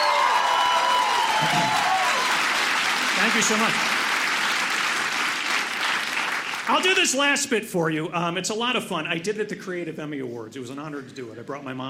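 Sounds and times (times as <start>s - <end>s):
audience applause and clapping: 0.0s - 7.2s
speech: 1.4s - 1.8s, 3.2s - 4.0s, 6.7s - 11.8s.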